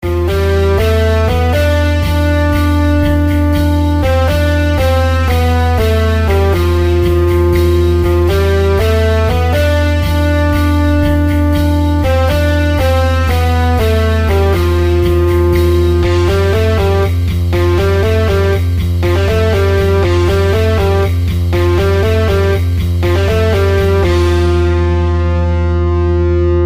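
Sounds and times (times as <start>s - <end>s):
tension music: 0.0s - 26.6s.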